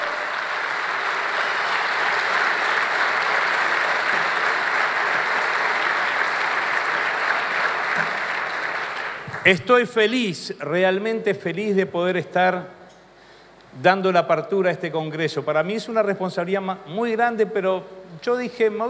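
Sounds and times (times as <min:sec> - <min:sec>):
audience applause: 0:00.0 - 0:09.7
speech: 0:09.5 - 0:12.8, 0:13.8 - 0:18.8.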